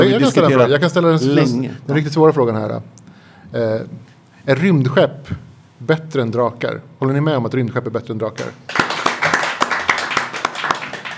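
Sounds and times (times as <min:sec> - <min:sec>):
speech: 0:00.0 - 0:08.8
audience clapping: 0:08.4 - 0:11.1.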